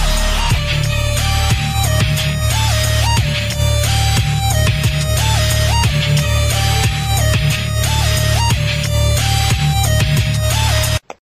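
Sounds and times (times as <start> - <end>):
metal dub music: 0.0 - 11.0.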